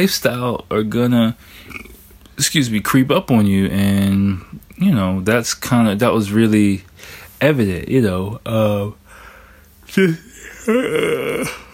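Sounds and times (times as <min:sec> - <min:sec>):
speech: 0:00.0 - 0:01.8, 0:02.4 - 0:09.0, 0:09.9 - 0:11.6
person yawning: 0:10.0 - 0:11.7.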